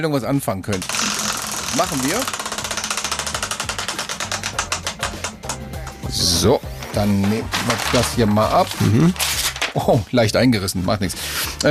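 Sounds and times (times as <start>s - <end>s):
speech: 0.0s - 1.1s, 1.7s - 2.4s, 6.1s - 11.7s
low quiet musical bed: 0.0s - 11.7s
spinning prize wheel clicking: 0.7s - 6.3s.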